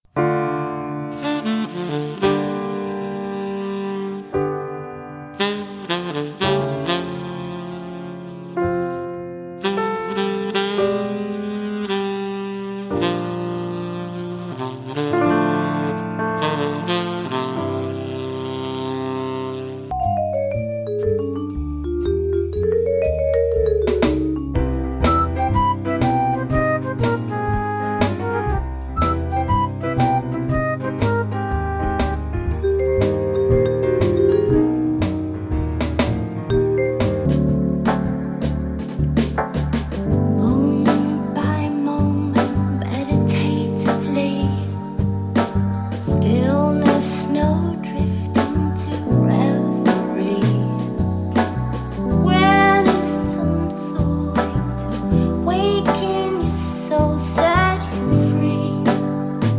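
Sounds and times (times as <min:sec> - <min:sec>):
jazz music: 0:00.2 - 0:59.5.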